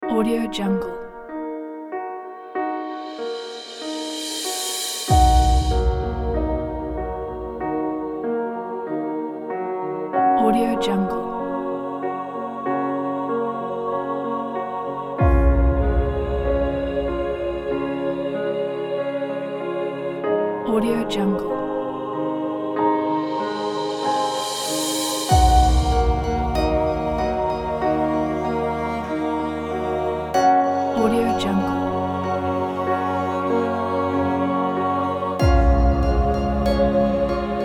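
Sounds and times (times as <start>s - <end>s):
emotional piano: 0.0s - 37.6s
orchestra: 2.4s - 37.6s.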